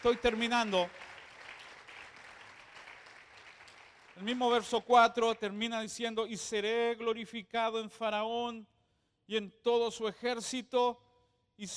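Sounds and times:
speech: 0.0 - 1.0, 4.2 - 8.7, 9.3 - 11.0, 11.6 - 11.7
audience applause: 0.0 - 4.3.

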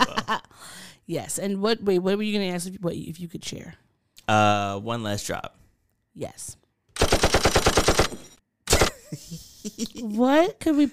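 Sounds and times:
speech: 1.1 - 5.6, 6.2 - 6.6, 9.1 - 10.9
machine-gun burst sound effect: 7.0 - 8.9.

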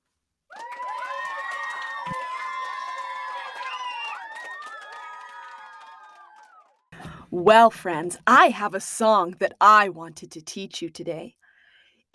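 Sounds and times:
scattered clapping: 0.5 - 6.8
children cheering and squealing: 0.6 - 6.6
speech: 7.3 - 11.4.

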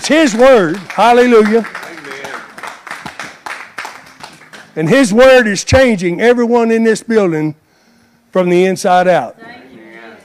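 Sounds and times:
audience clapping: 0.0 - 5.2
speech: 0.1 - 1.8, 4.8 - 7.6, 8.3 - 9.6.

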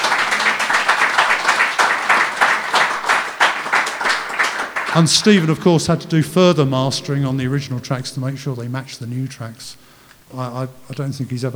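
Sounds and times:
crowd clapping: 0.0 - 8.6
laughter: 0.0 - 11.5
speech: 5.0 - 11.5.

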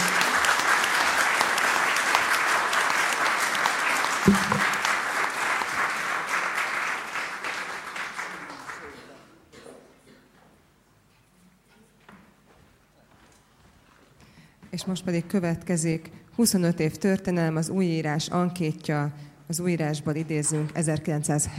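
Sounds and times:
audience applause: 0.0 - 9.3
speech: 4.2 - 4.7, 14.8 - 21.5.

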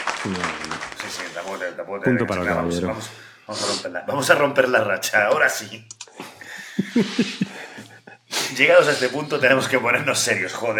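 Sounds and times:
crowd applause: 0.0 - 1.7
speech: 0.2 - 6.3, 7.0 - 7.6, 8.5 - 10.7
laughter: 6.2 - 9.3.

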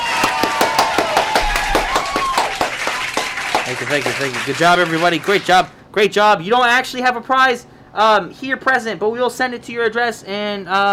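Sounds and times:
audience clapping: 0.0 - 5.7
speech: 3.7 - 10.9.

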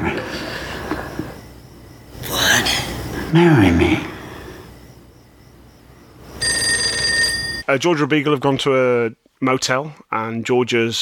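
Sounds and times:
faint wavering electronic tones: 0.3 - 7.6
telephone ringing: 0.3 - 7.7
speech: 3.3 - 4.1, 7.7 - 11.0.

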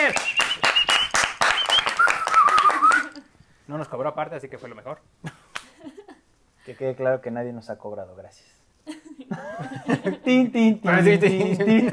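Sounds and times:
studio audience applause: 0.0 - 3.2
speech: 3.9 - 5.4, 6.6 - 8.6, 9.2 - 11.9
laughter: 8.9 - 10.4.

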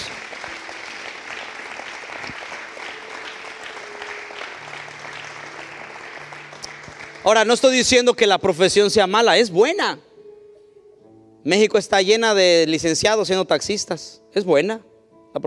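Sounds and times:
audience applause: 0.0 - 7.8
speech: 7.2 - 10.1, 11.4 - 15.4.

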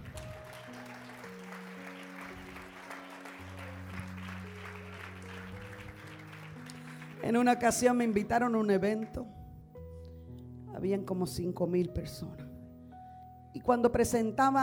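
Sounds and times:
audience applause: 0.0 - 7.4
speech: 7.2 - 9.4, 10.8 - 12.4, 13.5 - 14.6.

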